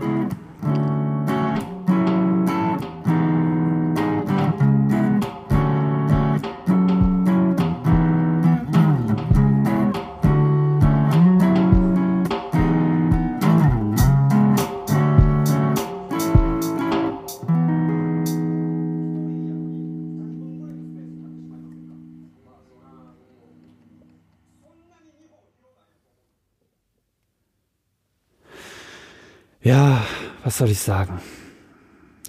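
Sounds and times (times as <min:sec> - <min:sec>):
music: 0:00.0 - 0:24.7
speech: 0:30.6 - 0:31.4.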